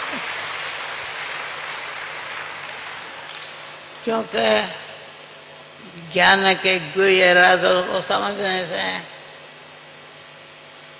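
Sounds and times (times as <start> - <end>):
hand clapping: 0.0 - 3.7
speech: 0.2 - 0.4, 4.0 - 4.8, 5.8 - 9.1.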